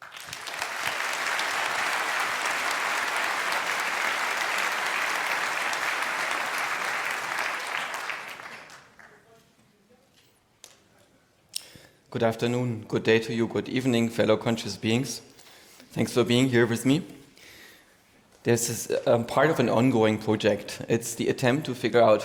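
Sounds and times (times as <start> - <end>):
audience applause: 0.0 - 9.2
speech: 12.1 - 15.3, 15.9 - 17.2, 18.4 - 22.2.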